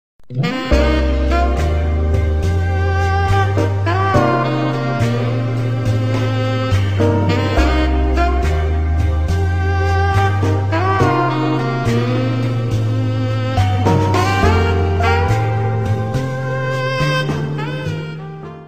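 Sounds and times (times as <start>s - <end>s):
saxophone melody: 0.3s - 18.6s.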